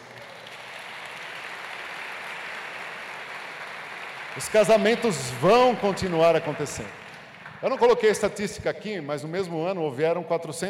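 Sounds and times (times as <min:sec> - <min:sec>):
large crowd clapping: 0:00.0 - 0:08.4
speech: 0:04.4 - 0:07.0, 0:07.6 - 0:10.6.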